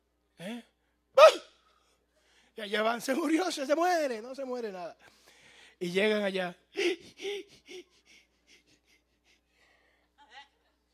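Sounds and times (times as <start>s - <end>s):
speech: 2.6s - 5.2s, 5.8s - 7.9s
voice imitating rapid heavy panting of hyperventilation: 6.8s - 10.0s.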